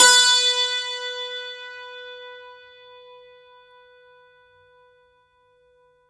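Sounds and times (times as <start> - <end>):
santoor: 0.0 - 4.7.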